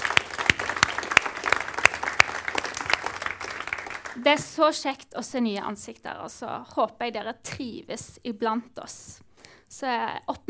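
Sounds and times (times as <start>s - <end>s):
audience applause: 0.0s - 4.3s
speech: 4.2s - 10.4s.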